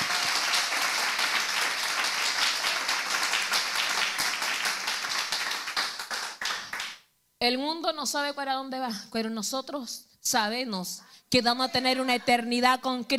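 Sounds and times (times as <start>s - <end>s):
audience applause: 0.0s - 7.0s
speech: 7.4s - 13.1s.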